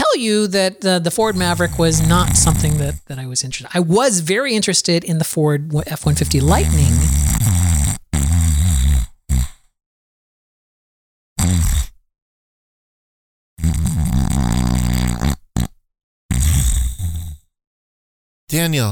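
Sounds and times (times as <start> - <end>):
speech: 0.2 - 7.9, 18.5 - 18.9
voice mimicking loud snoring: 1.2 - 3.1, 6.1 - 9.8, 11.4 - 12.0, 13.6 - 17.5.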